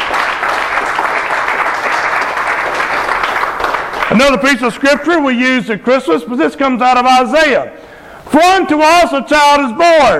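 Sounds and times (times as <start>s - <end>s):
large crowd clapping: 0.0s - 4.9s
speech: 4.2s - 7.8s, 8.4s - 10.1s.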